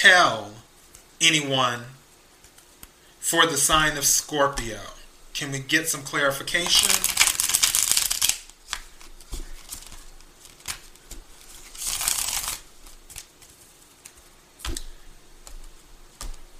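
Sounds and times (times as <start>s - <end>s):
speech: 0.0s - 0.6s, 1.2s - 2.0s, 3.2s - 7.2s
tarot cards being shuffled: 6.5s - 16.4s.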